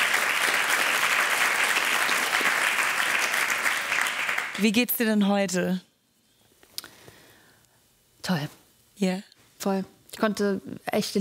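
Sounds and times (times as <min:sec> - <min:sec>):
crowd applause: 0:00.0 - 0:04.6
speech: 0:04.6 - 0:05.9, 0:08.3 - 0:11.1.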